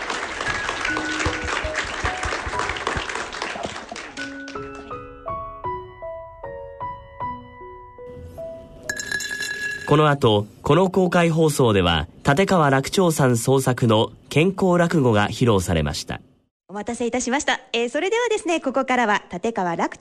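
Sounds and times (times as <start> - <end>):
audience applause: 0.0 - 5.0
speech: 9.9 - 19.9.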